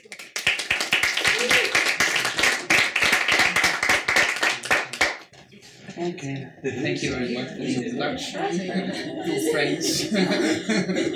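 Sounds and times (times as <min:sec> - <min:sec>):
audience applause: 0:00.0 - 0:05.3
speech: 0:06.0 - 0:11.1
laughter: 0:06.7 - 0:11.1.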